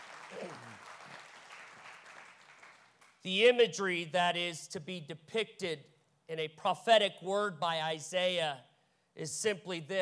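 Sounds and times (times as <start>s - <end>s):
audience clapping hands: 0.0s - 3.2s
speech: 3.2s - 10.0s.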